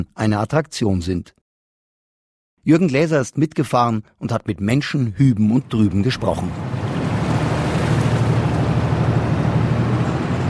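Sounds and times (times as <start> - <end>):
speech: 0.0 - 1.4, 2.6 - 6.8
wash of water: 5.7 - 10.4
river ferry engine chugging: 5.8 - 10.4.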